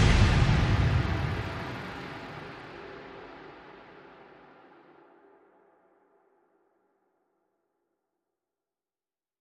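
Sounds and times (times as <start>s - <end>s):
percussion: 0.0s - 6.6s.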